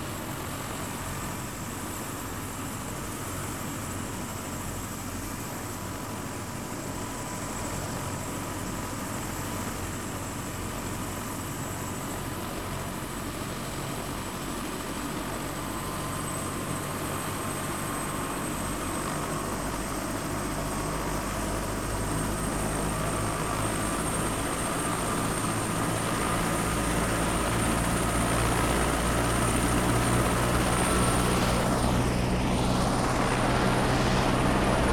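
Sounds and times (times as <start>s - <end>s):
helicopter departing: 0.0s - 34.9s
helicopter starting up: 12.8s - 34.9s.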